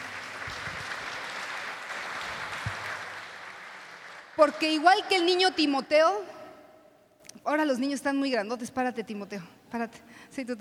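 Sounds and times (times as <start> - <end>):
applause: 0.0 - 5.1
speech: 4.4 - 6.4, 7.4 - 10.5.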